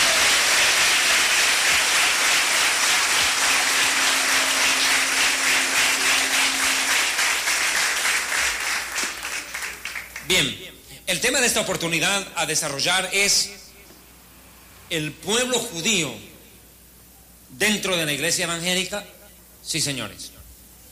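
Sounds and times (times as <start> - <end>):
audience applause: 0.0 - 10.3
speech: 11.1 - 13.6, 14.9 - 16.3, 17.6 - 20.4.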